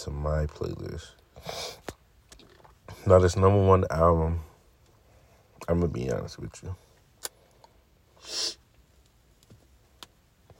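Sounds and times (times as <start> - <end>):
speech: 0.0 - 1.9, 3.0 - 4.5, 5.7 - 6.8
person sniffing in the background: 1.4 - 1.9, 8.2 - 8.6.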